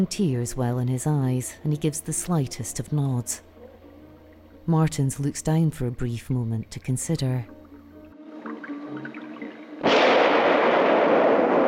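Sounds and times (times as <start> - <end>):
speech: 0.0 - 3.5, 4.7 - 7.6
gunshot ringing along a tunnel: 9.8 - 11.6.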